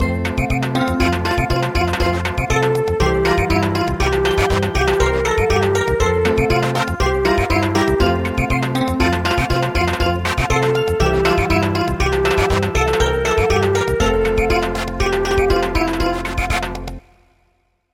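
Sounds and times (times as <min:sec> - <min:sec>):
samba music: 0:00.0 - 0:17.0.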